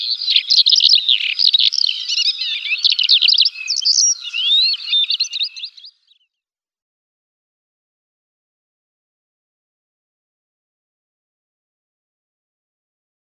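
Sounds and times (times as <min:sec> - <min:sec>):
black lark song: 0:00.0 - 0:06.4.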